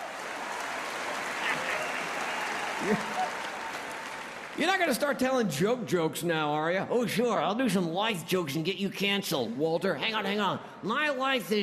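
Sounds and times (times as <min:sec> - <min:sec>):
crowd clapping: 0:00.0 - 0:05.2
speech: 0:02.8 - 0:03.2, 0:04.6 - 0:11.6.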